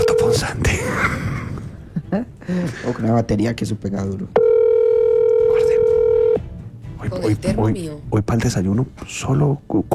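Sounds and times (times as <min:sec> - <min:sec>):
telephone call ringing unanswered: 0:00.0 - 0:00.4, 0:04.4 - 0:06.5
speech: 0:02.1 - 0:04.5, 0:07.0 - 0:09.9.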